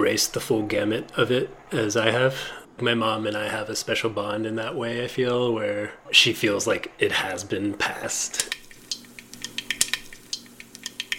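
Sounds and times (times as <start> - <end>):
speech: 0.1 - 8.6
mustard seeds popping in hot oil while khichdi is cooked: 8.4 - 11.1.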